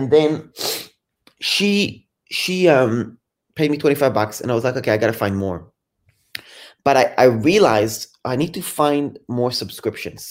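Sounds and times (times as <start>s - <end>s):
speech: 0.0s - 0.6s, 1.4s - 5.7s, 6.8s - 10.2s
person blowing nose: 0.5s - 1.0s.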